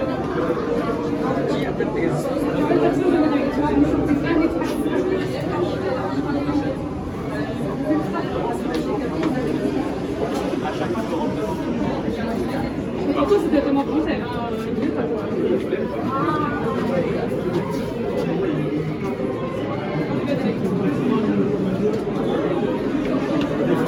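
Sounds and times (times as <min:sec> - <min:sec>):
people in a queue: 0:00.0 - 0:23.8.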